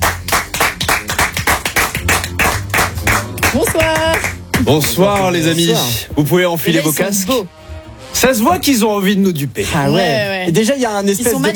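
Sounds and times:
audience applause welcoming contestants: 0.0 - 5.3
speech: 3.6 - 7.6, 8.2 - 11.5.

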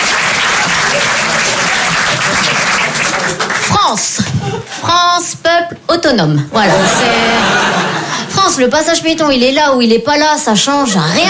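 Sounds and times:
applause: 0.0 - 4.4
speech: 3.9 - 4.2, 4.9 - 7.6, 8.5 - 11.2
laughter: 4.2 - 4.8, 6.5 - 8.4.

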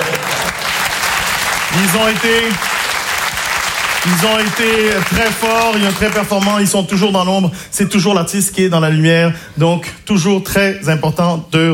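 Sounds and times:
audience applause for the technical crew at a comedy show: 0.0 - 6.8
speech: 1.8 - 2.7, 4.0 - 11.7.

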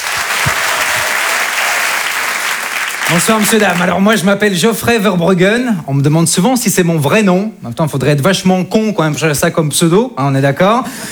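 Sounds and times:
audience applause: 0.0 - 4.1
speech: 3.1 - 11.1.

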